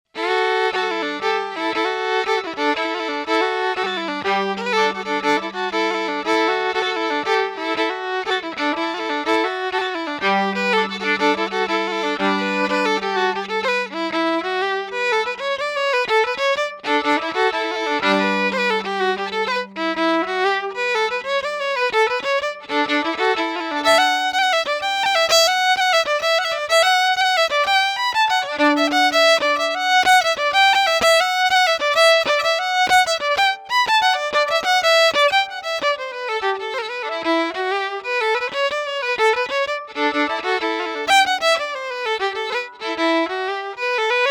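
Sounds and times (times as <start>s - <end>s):
violin: 0.1s - 44.2s.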